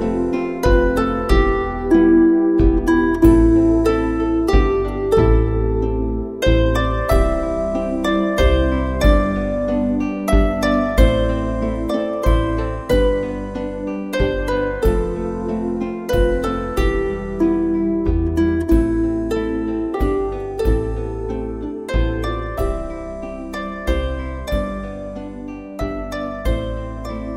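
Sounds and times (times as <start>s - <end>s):
double bass: 0.0s - 27.3s
harp: 0.0s - 27.3s.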